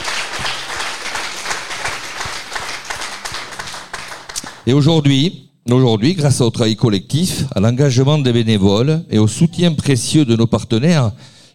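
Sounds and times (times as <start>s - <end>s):
audience applause: 0.0s - 4.6s
speech: 4.7s - 11.5s.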